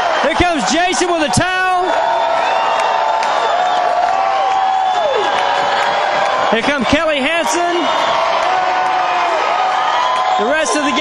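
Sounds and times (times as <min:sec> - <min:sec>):
concert crowd cheering for a rock band: 0:00.0 - 0:11.0
speech: 0:00.2 - 0:02.1, 0:06.5 - 0:08.3, 0:10.4 - 0:11.0.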